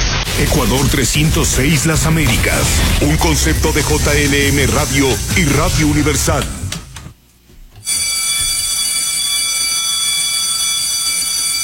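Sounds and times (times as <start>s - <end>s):
speech: 0.4s - 6.6s
bell ringing: 7.8s - 11.6s.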